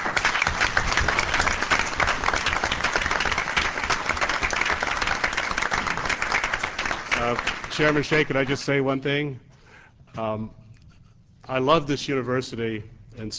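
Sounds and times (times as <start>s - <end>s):
crowd applauding: 0.0s - 8.6s
speech: 7.3s - 9.5s, 10.2s - 10.6s, 11.5s - 13.3s.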